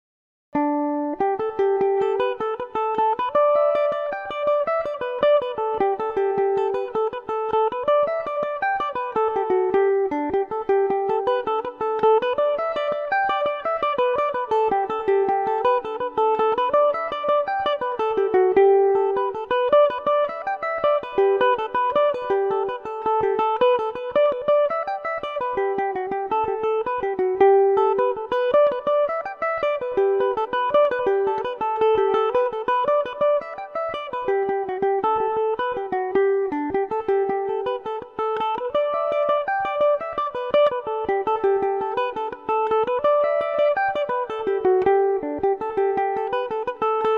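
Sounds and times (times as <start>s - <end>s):
Irish mandolin playing a low jig ending in G major: 0.6s - 47.1s.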